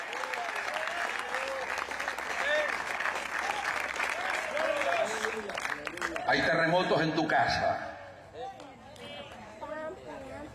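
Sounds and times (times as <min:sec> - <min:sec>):
audience applause: 0:00.0 - 0:06.4
speech: 0:06.3 - 0:07.9.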